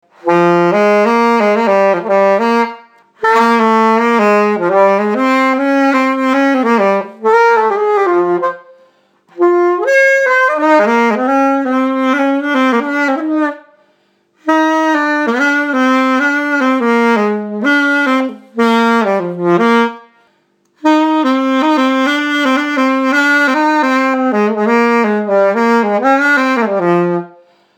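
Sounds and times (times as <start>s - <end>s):
saxophone: 0.0s - 27.7s.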